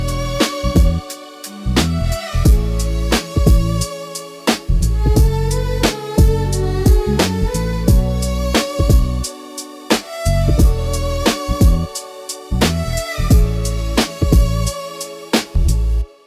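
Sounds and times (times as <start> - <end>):
mysterious lo-fi strings music: 0.0 - 16.2.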